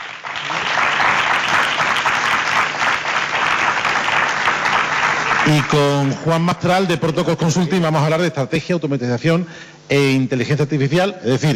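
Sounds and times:
audience applause: 0.0s - 6.2s
speech: 5.5s - 11.5s.

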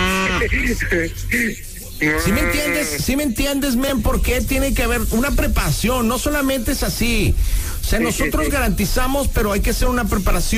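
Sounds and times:
man imitating a cow mooing: 0.0s - 0.5s, 2.0s - 3.1s
speech: 0.4s - 10.5s.

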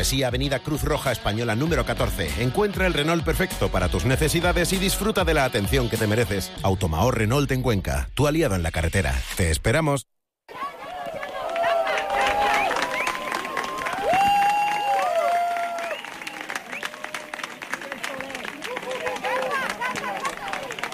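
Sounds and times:
speech: 0.0s - 10.6s
crowd applauding the eclipse in Cuenca: 10.5s - 20.9s.

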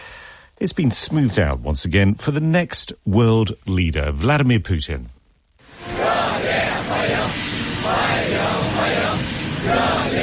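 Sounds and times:
speech: 0.6s - 5.2s
young people in Beijing chanting to welcome Vladimir Putin: 5.7s - 10.2s.

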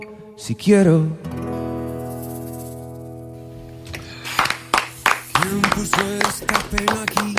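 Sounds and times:
speech: 0.0s - 1.3s, 6.0s - 7.3s
people applauding in the control room: 4.0s - 7.3s.

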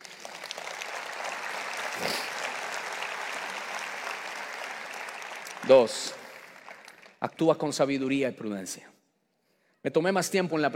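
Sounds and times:
applause: 0.0s - 8.1s
speech: 5.7s - 6.2s, 7.2s - 8.9s, 9.8s - 10.7s.

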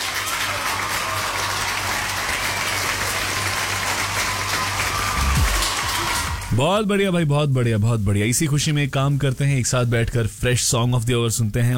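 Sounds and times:
applause: 0.0s - 6.7s
speech: 6.6s - 11.7s.

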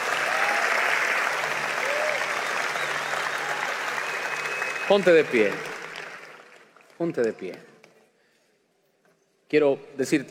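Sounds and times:
audience applause: 0.0s - 7.6s
speech: 4.9s - 5.7s, 7.0s - 7.7s, 9.5s - 10.2s.

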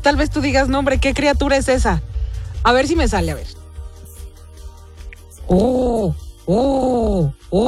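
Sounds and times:
speech: 0.0s - 3.6s, 5.5s - 7.6s
person imitating dove cooing: 5.5s - 7.6s.

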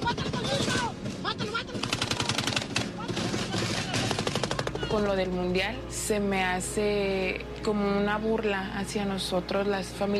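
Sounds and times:
gunfire bursts: 0.0s - 4.9s
speech: 4.9s - 10.1s.

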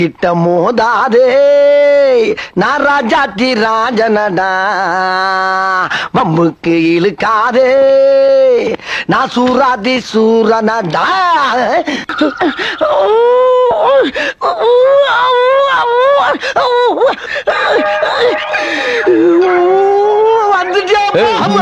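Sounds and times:
speech: 0.0s - 21.6s
person crying loudly: 12.2s - 21.6s.

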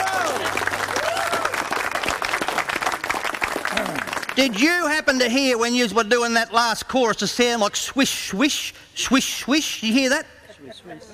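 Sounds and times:
audience clapping: 0.0s - 5.4s
speech: 4.4s - 11.1s.

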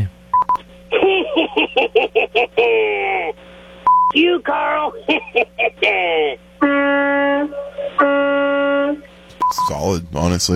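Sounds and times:
faint steady hum: 0.0s - 10.5s
telephone keypad beeps: 0.4s - 0.6s
laughter: 0.9s - 3.4s, 4.2s - 6.4s, 7.4s - 8.0s
speech: 1.1s - 3.4s, 4.2s - 8.2s, 9.6s - 10.5s
sustained telephone tone: 6.6s - 9.7s.

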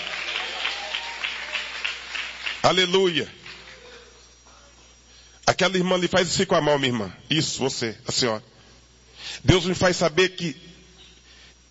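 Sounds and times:
churchgoers clapping in time during a service: 0.0s - 4.6s
speech: 2.6s - 3.4s, 5.5s - 8.5s, 9.2s - 10.7s.

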